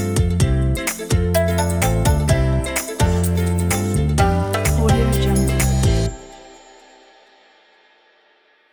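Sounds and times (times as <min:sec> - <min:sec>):
summer ukulele: 0:00.0 - 0:06.8.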